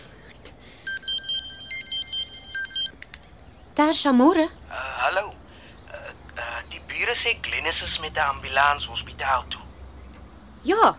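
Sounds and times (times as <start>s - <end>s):
phone ringing with a bright electronic ringtone: 0.8s - 3.0s
speech: 3.8s - 5.3s, 7.1s - 9.6s, 10.6s - 10.9s.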